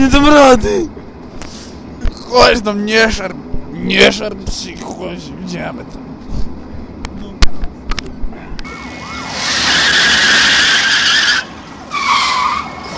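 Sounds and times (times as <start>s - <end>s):
speech: 0.0s - 1.0s, 2.3s - 6.1s
car tires squealing while skidding: 8.6s - 12.9s.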